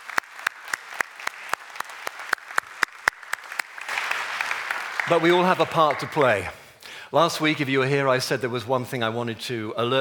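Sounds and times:
clapping: 0.0s - 6.5s
speech: 5.1s - 9.9s.

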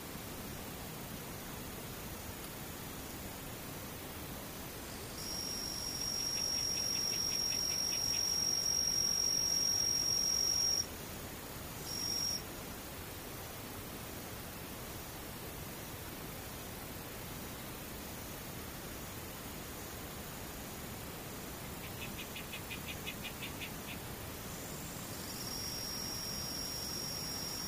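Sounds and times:
steady soft hiss: 0.0s - 27.6s
thin high continuous insect trill: 4.7s - 10.9s, 11.6s - 12.5s, 21.4s - 27.6s
faint pulsing insect chirps: 4.8s - 10.9s, 11.8s - 12.4s, 21.6s - 27.6s.

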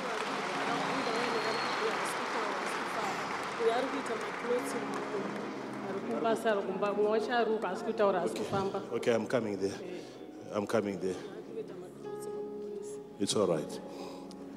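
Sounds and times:
audience clapping hands: 0.0s - 6.6s
speech: 3.8s - 11.4s, 13.2s - 14.0s.

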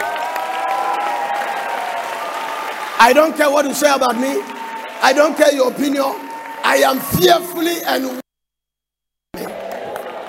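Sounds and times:
audience applauding: 0.0s - 8.2s, 9.4s - 10.2s
speech: 3.0s - 8.2s.

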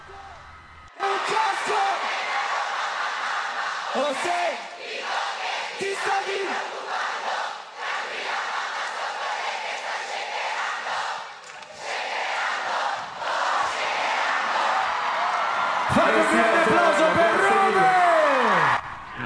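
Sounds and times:
large concert crowd chanting a song: 1.0s - 18.5s
cheers and whistles: 14.9s - 19.2s.

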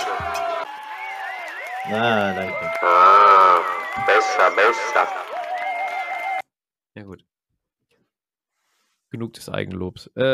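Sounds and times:
clapping: 0.0s - 6.4s
crowd cheering: 0.0s - 6.4s
speech: 1.8s - 5.4s, 9.1s - 10.3s
person whooping: 1.9s - 6.4s.

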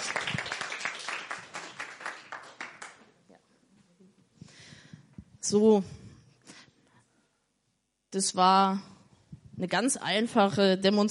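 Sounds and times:
audience applause: 0.0s - 3.1s
speech: 5.5s - 6.0s, 8.2s - 8.9s, 9.6s - 11.1s.

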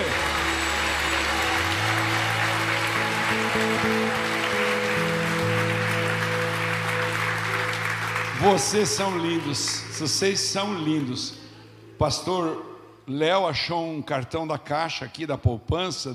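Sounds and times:
audience applauding loudly: 0.0s - 11.6s
sustained low musical notes humming and shifting pitch: 0.0s - 11.9s
speech: 8.5s - 11.4s, 12.0s - 16.1s.

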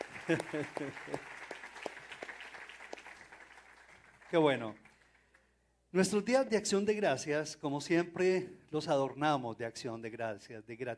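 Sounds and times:
laughter: 0.0s - 1.3s
audience applause: 0.0s - 5.2s
speech: 0.3s - 1.4s, 4.3s - 4.8s, 5.9s - 10.9s.

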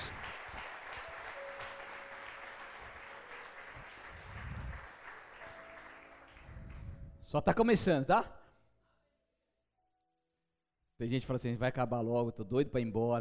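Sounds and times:
audience applause: 0.0s - 6.9s
speech: 7.3s - 8.4s, 11.0s - 13.1s.

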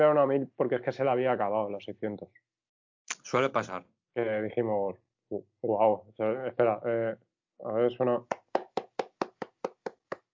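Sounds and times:
speech: 0.0s - 2.6s, 3.3s - 8.4s
single pair of hands clapping: 8.3s - 10.3s.

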